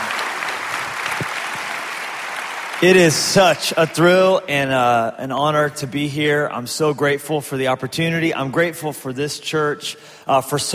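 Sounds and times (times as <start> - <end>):
church audience applause welcoming a guest pastor: 0.0 - 4.0
speech: 2.8 - 10.7.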